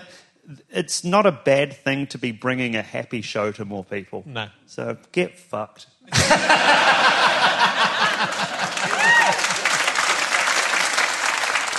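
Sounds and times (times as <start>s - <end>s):
speech: 0.5s - 7.0s
laughter: 6.1s - 10.3s
audience clapping: 7.1s - 11.7s.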